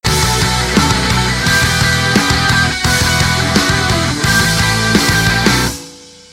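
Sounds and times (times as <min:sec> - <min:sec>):
outro music: 0:00.0 - 0:06.3.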